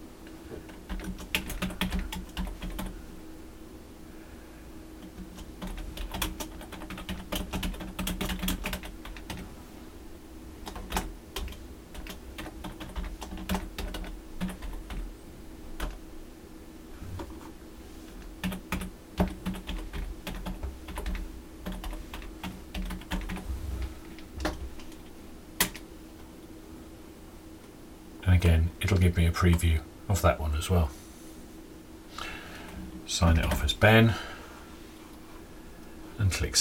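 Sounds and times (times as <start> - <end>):
typing a website address on a computer keyboard: 0.7 - 2.9, 5.0 - 9.4, 10.6 - 15.1, 15.8 - 16.0, 18.4 - 23.4, 24.4 - 24.9, 25.6 - 25.8
speech: 28.4 - 31.0, 33.2 - 34.3, 36.4 - 36.6.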